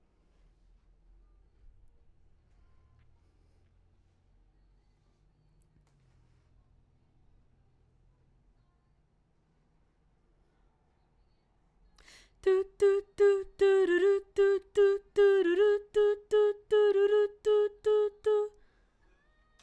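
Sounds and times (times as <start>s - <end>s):
background vocals: 12.1s - 18.6s.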